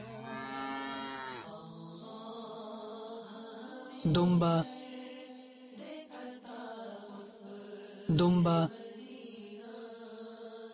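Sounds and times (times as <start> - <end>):
cow mooing: 0.0 - 1.5
speech: 4.0 - 4.8, 8.2 - 8.8.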